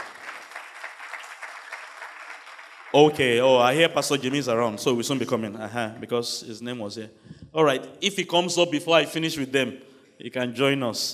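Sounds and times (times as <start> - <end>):
audience clapping: 0.0 - 4.5
speech: 2.9 - 11.1.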